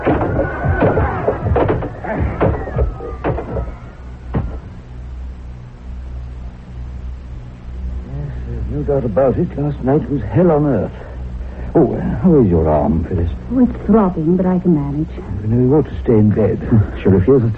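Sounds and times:
door being smashed open with a chair: 0.0 - 3.8
low steady hum: 0.0 - 17.5
speech: 9.0 - 11.1, 11.7 - 17.5.

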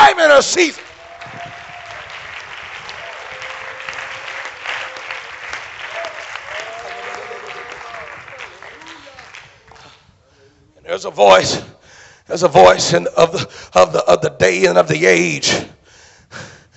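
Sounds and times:
audience clapping hands: 0.0 - 10.1
speech: 0.4 - 0.9, 11.0 - 15.7.

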